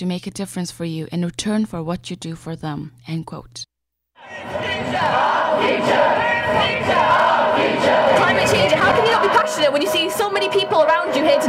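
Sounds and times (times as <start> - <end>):
speech: 0.0 - 11.4
school students on a climate protest march shouting and cheering: 4.2 - 11.4.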